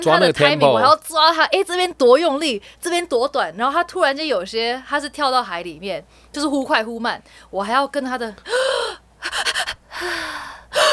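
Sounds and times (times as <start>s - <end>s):
speech: 0.0s - 10.9s
person panting and gasping for breath: 8.5s - 10.9s.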